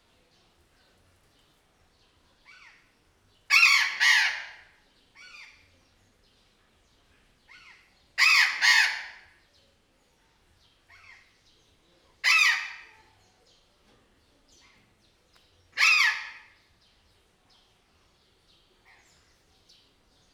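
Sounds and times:
burrowing parrot answering from outside in a zoo: 0:03.5 - 0:04.6, 0:08.2 - 0:09.2, 0:15.8 - 0:16.5.

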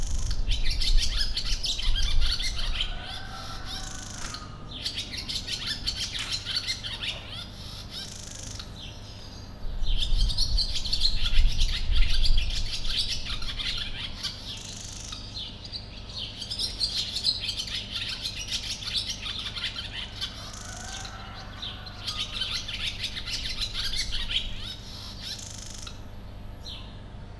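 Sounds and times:
wind in Potamia: 0:00.0 - 0:27.3
rooster in Potamia: 0:02.2 - 0:04.7, 0:19.8 - 0:22.9.

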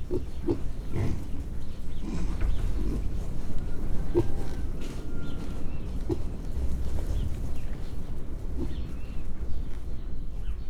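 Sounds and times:
pig grunting: 0:00.0 - 0:07.4, 0:08.4 - 0:09.2
rumbling background noise: 0:00.0 - 0:10.6.

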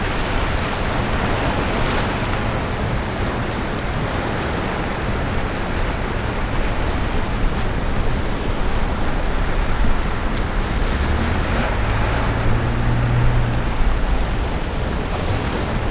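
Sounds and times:
car: 0:00.0 - 0:15.8
ocean at Orzola: 0:00.0 - 0:15.8.

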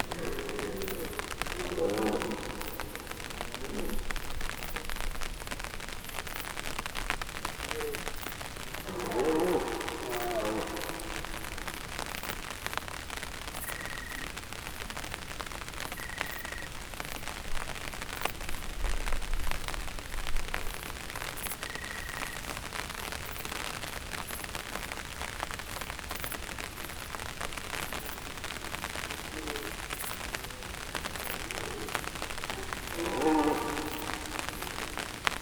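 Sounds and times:
red deer stags bellowing: 0:00.0 - 0:05.3, 0:07.6 - 0:12.8, 0:27.6 - 0:35.4
rain: 0:00.0 - 0:35.4
wind: 0:00.0 - 0:35.4.

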